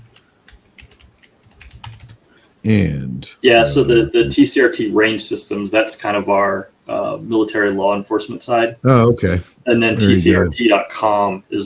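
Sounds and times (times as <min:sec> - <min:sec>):
typing on a computer keyboard: 0:00.0 - 0:02.2
speech: 0:02.6 - 0:11.6.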